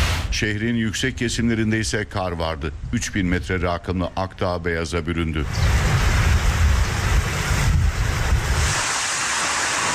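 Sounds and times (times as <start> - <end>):
speech: 0.3 - 5.8
strong storm wind blowing at around 80 km/h in Tekirdağ: 5.4 - 9.9.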